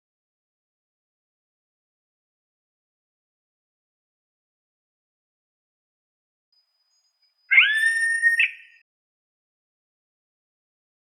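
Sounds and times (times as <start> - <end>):
yellow-headed caracara screaming: 7.5 - 8.7.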